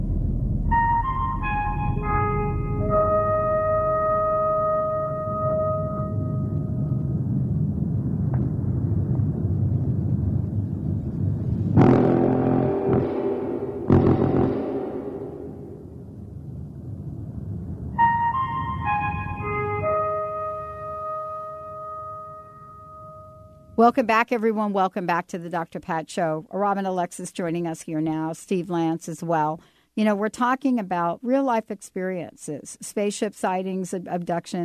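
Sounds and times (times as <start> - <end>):
deep continuous rumble: 0.0 - 21.0
five-tone musical signal: 0.7 - 7.1, 18.0 - 23.8
harsh bursts of noise: 11.8 - 16.3
speech: 23.8 - 34.6.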